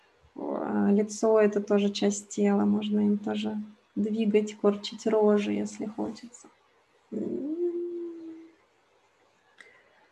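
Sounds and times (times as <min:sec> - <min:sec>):
speech: 0:00.9 - 0:07.3
person whimpering: 0:07.2 - 0:08.5.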